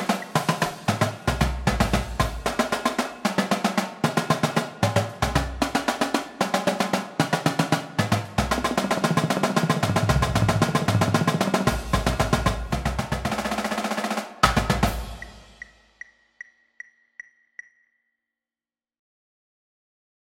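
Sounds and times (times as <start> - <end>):
drumline double sequence: 0.0 - 16.0.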